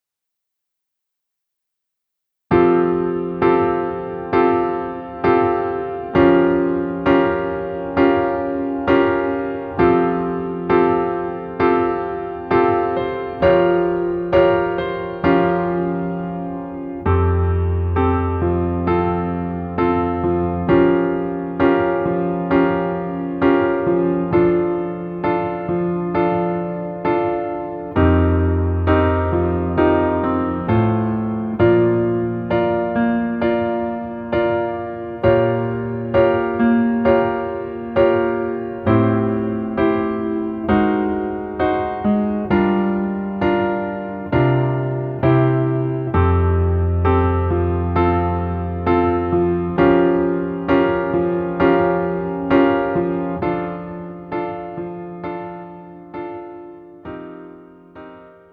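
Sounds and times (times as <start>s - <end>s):
piano piece in female key: 2.5s - 58.5s.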